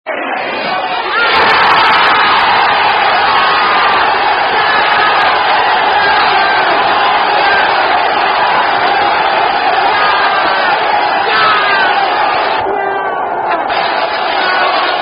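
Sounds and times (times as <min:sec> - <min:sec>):
football crowd chanting: 0:00.1 - 0:15.0.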